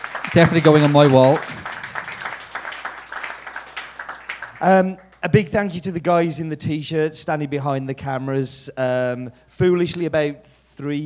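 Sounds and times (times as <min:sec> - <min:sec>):
audience applause: 0:00.0 - 0:04.8
speech: 0:00.4 - 0:01.5, 0:04.6 - 0:11.0.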